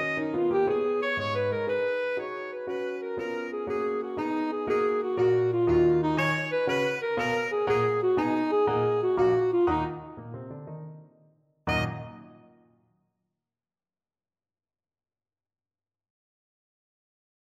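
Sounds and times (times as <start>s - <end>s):
alto saxophone playing a tarantelle: 0.0s - 10.4s, 11.7s - 12.6s.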